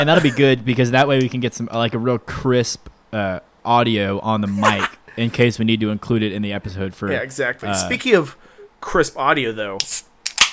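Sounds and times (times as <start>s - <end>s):
laughter: 0.0s - 0.5s, 4.5s - 5.4s
speech: 0.0s - 10.1s
drink can cracking open: 9.8s - 10.5s.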